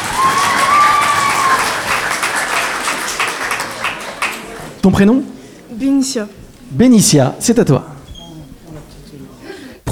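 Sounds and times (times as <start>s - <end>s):
audience applauding students: 0.0s - 4.8s
speech: 4.8s - 7.9s.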